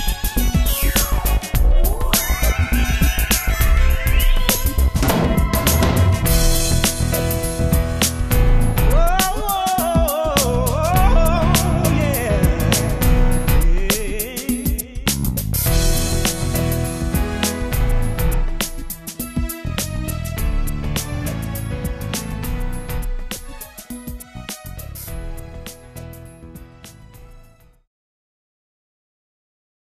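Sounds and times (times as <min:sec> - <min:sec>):
Korg Triton synthesizer: 0:00.0 - 0:27.8.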